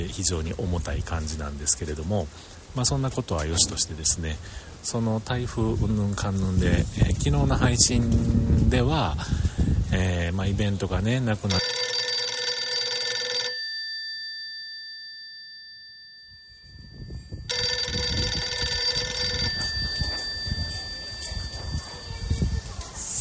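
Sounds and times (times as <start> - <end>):
speech: 0.0 - 11.8
telephone bell ringing: 11.5 - 23.1.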